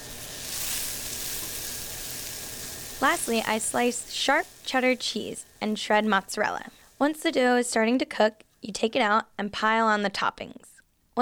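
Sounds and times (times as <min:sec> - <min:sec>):
onions and peppers sautéing in a pan for pizza toppings: 0:00.0 - 0:08.0
speech: 0:03.0 - 0:11.1.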